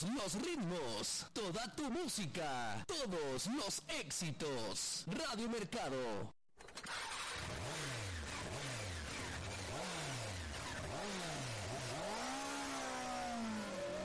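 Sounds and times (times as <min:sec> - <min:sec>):
speech: 0:00.0 - 0:06.4
motorcycle engine revving: 0:06.8 - 0:14.0.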